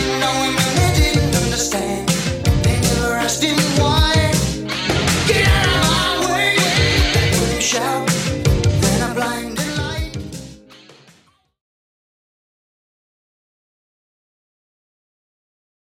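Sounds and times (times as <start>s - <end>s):
80s style music at 80 bpm: 0.0s - 11.3s.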